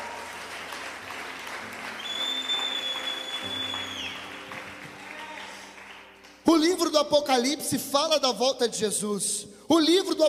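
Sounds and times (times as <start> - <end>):
audience applause: 0.0 - 6.4
speech: 6.6 - 10.2.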